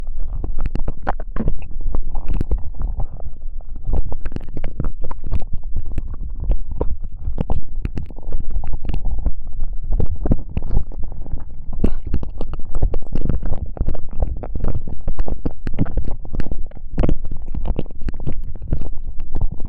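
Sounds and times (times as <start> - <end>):
ASMR ear licking in the right ear: 0.1 - 19.6.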